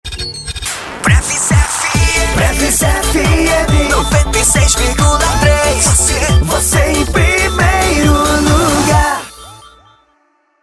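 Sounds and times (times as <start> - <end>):
jingle: 2.0 - 10.1.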